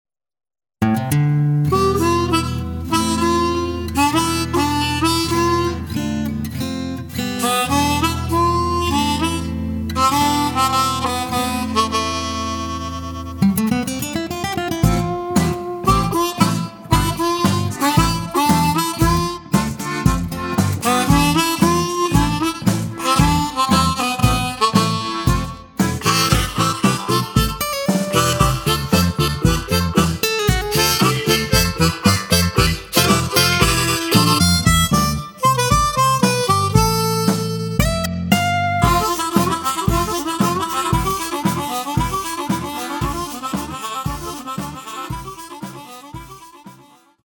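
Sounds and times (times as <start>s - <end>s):
blues harmonica playing tango: 1.6s - 47.2s.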